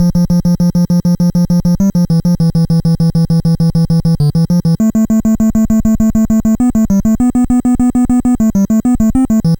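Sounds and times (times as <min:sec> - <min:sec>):
NES chiptune bass: 0:00.0 - 0:09.5.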